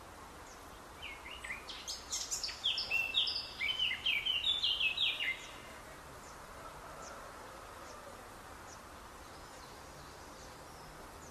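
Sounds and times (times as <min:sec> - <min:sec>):
soft hiss: 0:00.0 - 0:11.3
Eurasian blackcap song: 0:00.5 - 0:05.7.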